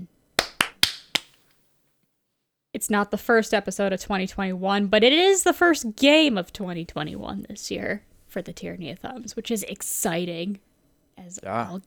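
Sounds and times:
sync hand claps: 0.4s - 1.4s
speech: 2.8s - 11.8s.

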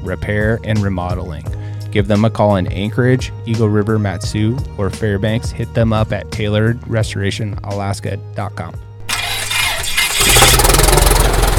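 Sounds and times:
speech: 0.0s - 8.9s
engine cranking and starting: 9.0s - 11.5s.

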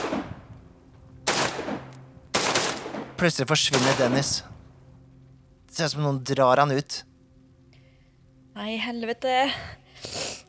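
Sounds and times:
gunshots: 0.0s - 0.4s, 1.2s - 4.4s
speech: 3.2s - 4.6s, 5.8s - 7.1s, 8.6s - 10.2s.

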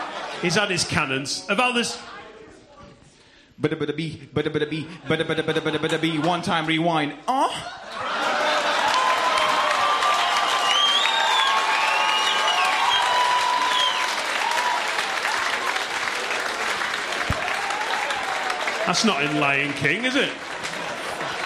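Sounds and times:
laughter: 0.0s - 1.2s, 4.7s - 9.7s, 20.4s - 21.4s
speech: 0.4s - 2.2s, 3.6s - 7.8s, 18.9s - 20.5s
large audience applause: 7.9s - 21.4s
cheers and whoops: 8.0s - 15.9s, 17.2s - 19.0s.

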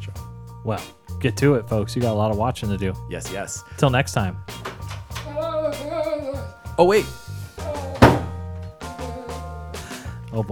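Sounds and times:
speech: 0.6s - 4.7s, 6.8s - 7.2s, 10.3s - 10.5s
heavy door slamming: 4.5s - 5.4s, 7.9s - 8.5s.

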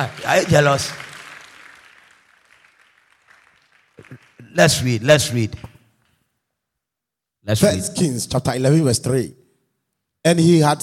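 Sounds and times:
speech: 0.0s - 1.0s, 4.5s - 5.7s, 7.4s - 9.4s, 10.2s - 10.8s
audience clapping: 0.0s - 6.1s.

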